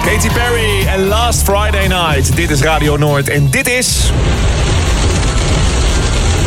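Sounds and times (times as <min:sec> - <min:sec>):
speech: 0:00.1 - 0:05.1
heavy rain: 0:03.9 - 0:06.4.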